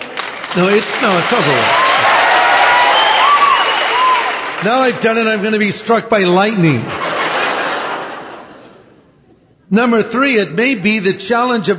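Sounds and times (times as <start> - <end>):
scattered thin applause from an audience: 0.0 - 5.4
speech: 0.5 - 1.9, 4.6 - 7.0, 9.7 - 11.7
laughter: 0.6 - 2.5, 6.5 - 9.0.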